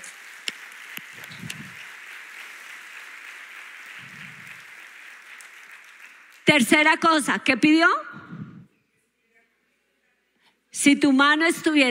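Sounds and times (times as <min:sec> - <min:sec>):
audience applauding: 0:00.0 - 0:06.7
speech: 0:06.5 - 0:08.1, 0:10.8 - 0:11.8.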